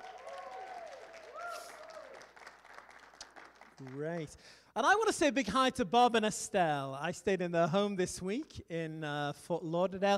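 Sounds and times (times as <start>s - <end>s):
audience applause: 0.0s - 4.2s
speech: 3.8s - 10.1s.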